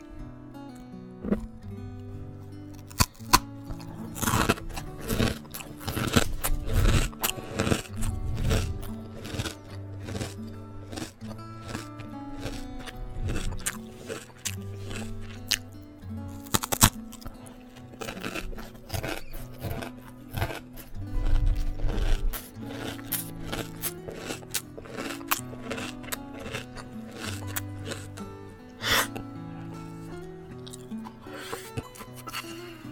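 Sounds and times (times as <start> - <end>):
person chewing crunchy salted egg yolk rice crisps: 0.7 - 1.5, 2.6 - 32.9.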